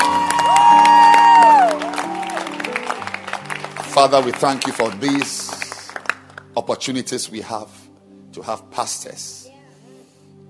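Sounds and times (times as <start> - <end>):
audience cheering: 0.0 - 4.4
audience clapping: 0.0 - 6.6
speech: 4.0 - 5.5, 6.6 - 7.8, 8.4 - 9.4.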